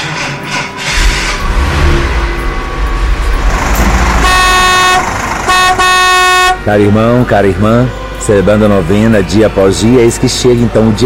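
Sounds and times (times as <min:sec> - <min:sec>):
rumbling truck engine: 0:00.0 - 0:09.2
loud truck horn honking: 0:01.0 - 0:08.9
speech: 0:06.6 - 0:11.0.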